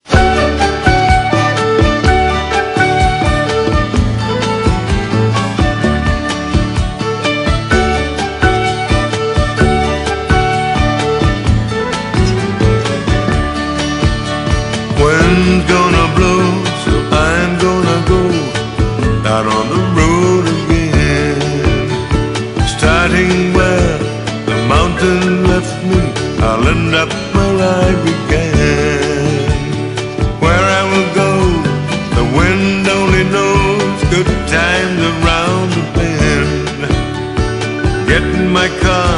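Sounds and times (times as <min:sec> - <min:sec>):
blues music: 0:00.0 - 0:39.1.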